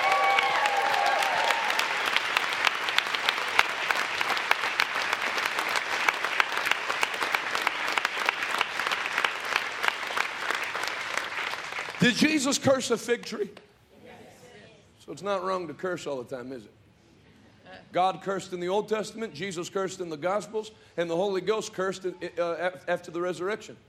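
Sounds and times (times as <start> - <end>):
audience clapping: 0.0 - 13.4
speech: 12.0 - 13.7, 15.1 - 16.8, 17.9 - 23.8.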